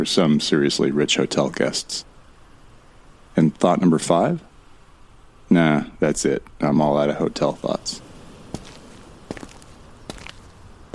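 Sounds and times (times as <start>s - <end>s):
speech: 0.0s - 2.1s, 3.4s - 4.5s, 5.5s - 8.0s
soft steady hiss: 0.0s - 10.9s
footsteps crunching on dusty gritty floor: 8.4s - 10.9s.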